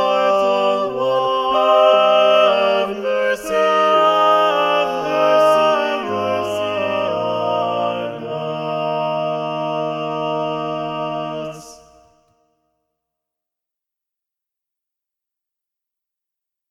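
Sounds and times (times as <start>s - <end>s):
SATB choir singing with balanced voices: 0.0s - 12.3s.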